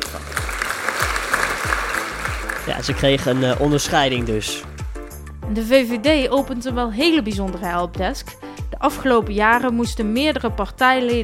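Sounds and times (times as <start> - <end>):
loud applause: 0.0 - 5.0
speech: 2.7 - 4.7, 5.5 - 11.2.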